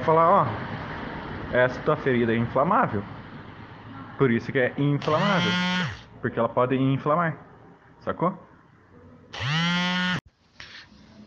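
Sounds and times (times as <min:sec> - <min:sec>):
speech: 0:00.0 - 0:00.8, 0:01.5 - 0:03.2, 0:04.2 - 0:07.4, 0:08.0 - 0:08.5
dental equipment being tested by a dentist with electric buzz: 0:05.0 - 0:06.1, 0:09.4 - 0:10.9.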